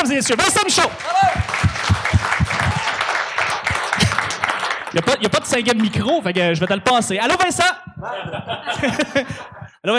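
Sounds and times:
speech: 0:00.1 - 0:01.7, 0:05.0 - 0:09.9
audience applause: 0:00.4 - 0:06.0
laughter: 0:08.0 - 0:09.9.

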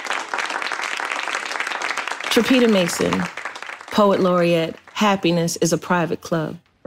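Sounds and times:
applause: 0:00.0 - 0:05.4
speech: 0:02.3 - 0:03.4, 0:04.0 - 0:06.6.

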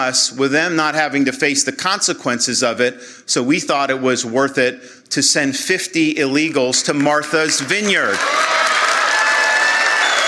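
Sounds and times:
speech: 0:00.0 - 0:08.8
crowd applause: 0:07.5 - 0:10.2.

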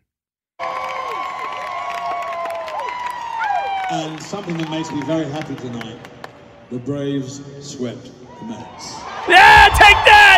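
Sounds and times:
big concert crowd cheering: 0:00.6 - 0:06.1, 0:08.3 - 0:10.3
crowd clapping: 0:00.6 - 0:06.4
speech: 0:03.9 - 0:10.3.

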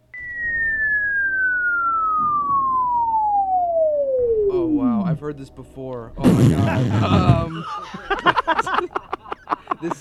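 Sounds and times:
whistle: 0:00.0 - 0:05.0
speech: 0:05.3 - 0:09.1, 0:09.8 - 0:09.9
laughter: 0:06.2 - 0:09.9.

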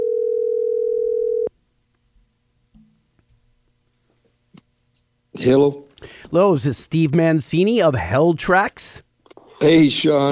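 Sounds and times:
telephone dial tone while dialing: 0:00.0 - 0:01.5
speech: 0:05.4 - 0:10.2.

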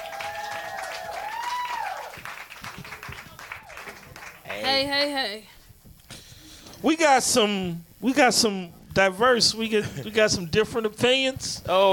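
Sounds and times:
whoops and cheers: 0:00.0 - 0:02.2
audience applause: 0:00.0 - 0:04.6
speech: 0:04.6 - 0:05.5, 0:06.8 - 0:11.9.

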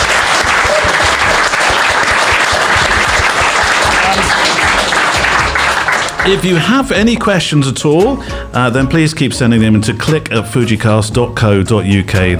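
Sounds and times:
audience applause: 0:00.0 - 0:06.7
speech: 0:06.3 - 0:12.3.

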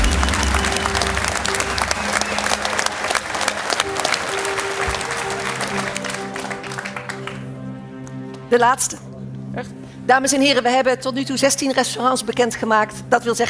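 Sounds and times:
low hum: 0:00.0 - 0:03.0
faint crowd noise: 0:00.0 - 0:07.2
audience applause: 0:00.0 - 0:07.6
speech: 0:08.5 - 0:13.4.

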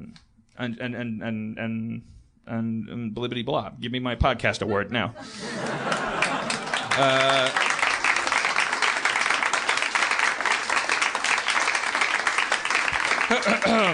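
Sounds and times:
speech: 0:00.1 - 0:06.0, 0:07.0 - 0:07.7, 0:13.3 - 0:13.9
laughter: 0:04.6 - 0:08.2, 0:13.0 - 0:13.9
round of applause sound effect: 0:05.7 - 0:13.9.

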